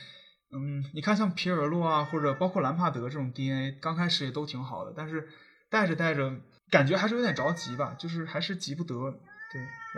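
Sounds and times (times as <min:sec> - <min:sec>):
speech: 0:00.5 - 0:09.9
cat meowing: 0:01.7 - 0:02.9, 0:07.0 - 0:08.4, 0:09.2 - 0:09.9.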